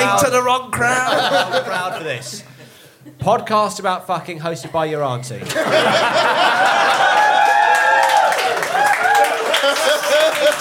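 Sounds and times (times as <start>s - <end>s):
speech: 0.1s - 7.0s
laughter: 0.8s - 3.2s, 5.4s - 10.5s
live audience cheering and applauding: 5.6s - 10.5s.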